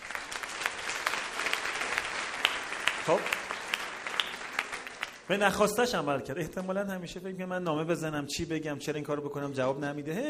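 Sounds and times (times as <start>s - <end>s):
audience applause: 0.0s - 5.4s
speech: 3.1s - 3.4s, 5.3s - 10.2s.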